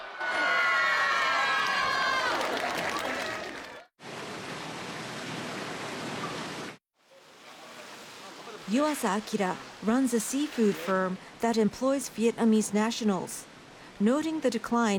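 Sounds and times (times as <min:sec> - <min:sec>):
crowd cheering at amateur sumo tournament: 0:00.0 - 0:03.9
clapping: 0:00.4 - 0:03.9
speech: 0:08.7 - 0:14.9.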